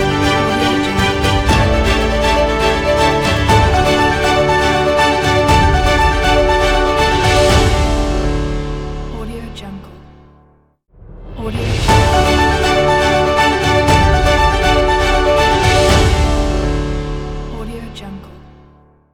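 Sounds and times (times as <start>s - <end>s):
victory awards fanfare ident: 0.0s - 9.2s, 11.5s - 17.6s.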